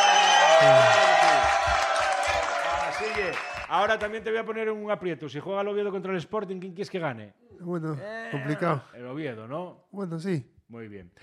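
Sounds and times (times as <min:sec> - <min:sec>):
cheering and whoops: 0:00.0 - 0:03.7
crowd applause: 0:00.0 - 0:04.1
speech: 0:00.6 - 0:01.0, 0:03.2 - 0:11.2.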